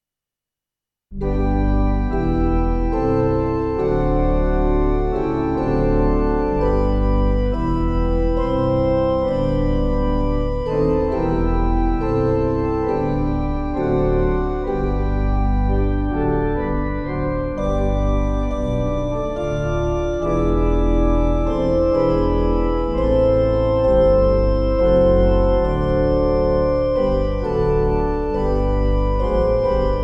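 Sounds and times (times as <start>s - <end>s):
national anthem music: 1.2s - 30.0s.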